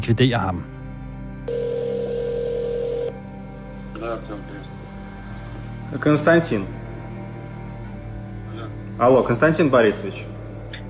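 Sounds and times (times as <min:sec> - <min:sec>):
speech: 0:00.0 - 0:00.7, 0:04.0 - 0:04.7, 0:05.9 - 0:06.8, 0:08.6 - 0:10.3
telephone call ringing tone: 0:01.5 - 0:03.2.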